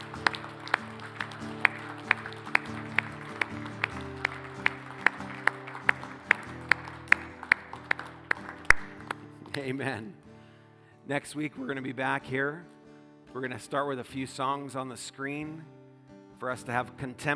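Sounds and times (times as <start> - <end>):
audience clapping hands: 0.0 - 9.8
speech: 9.7 - 10.2, 11.1 - 15.8, 16.4 - 17.3.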